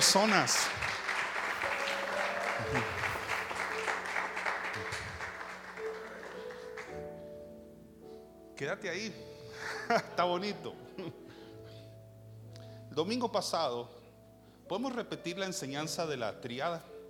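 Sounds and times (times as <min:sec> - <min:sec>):
speech: 0:00.0 - 0:00.8, 0:02.6 - 0:03.0, 0:08.6 - 0:09.3, 0:09.9 - 0:11.2, 0:13.0 - 0:14.0, 0:14.7 - 0:16.9
crowd applauding in an offering of palms: 0:00.0 - 0:07.3
laughter: 0:02.3 - 0:03.6.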